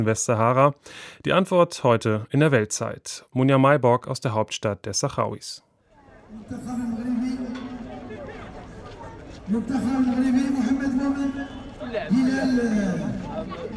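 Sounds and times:
speech: 0:00.0 - 0:05.7, 0:06.3 - 0:07.6, 0:09.5 - 0:13.7
crowd of spectators at bicycle race in El Aaiún: 0:06.1 - 0:13.7.

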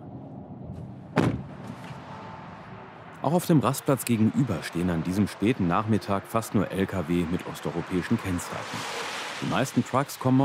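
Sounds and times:
car door slamming by a motorway: 0:01.2 - 0:01.9
speech: 0:03.2 - 0:10.4.

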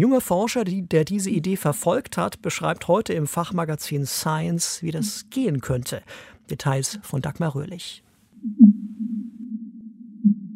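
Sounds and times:
speech: 0:00.0 - 0:08.7
fin whale song: 0:08.4 - 0:10.5.

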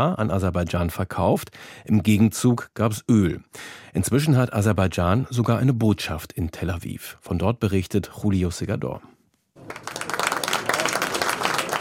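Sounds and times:
speech: 0:00.0 - 0:09.9
applause at the opening of Azerbaijan's embassy in Tel Aviv: 0:09.6 - 0:11.7.

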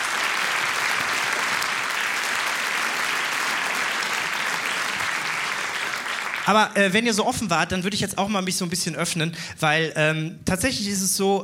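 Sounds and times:
audience applause: 0:00.0 - 0:06.7
speech: 0:06.5 - 0:11.4.

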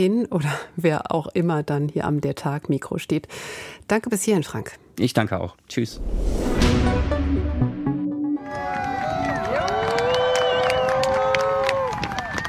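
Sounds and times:
speech: 0:00.0 - 0:07.0
crowd applause and cheering at airport: 0:08.2 - 0:12.4.

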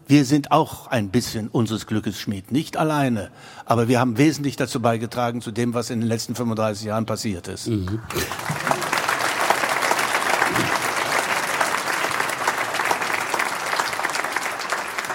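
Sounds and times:
speech: 0:00.1 - 0:08.6
audience applause: 0:08.1 - 0:15.1.

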